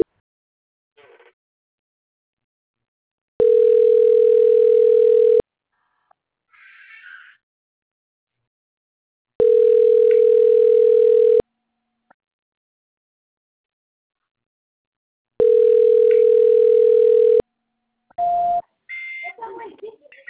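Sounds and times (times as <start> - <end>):
telephone line tone during a call transfer: 3.4 - 5.4, 9.4 - 11.4, 15.4 - 17.4, 18.2 - 19.2
people talking: 19.2 - 20.2.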